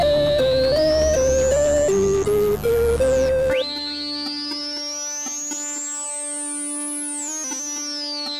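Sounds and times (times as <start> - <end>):
synths: 0.0 - 4.5.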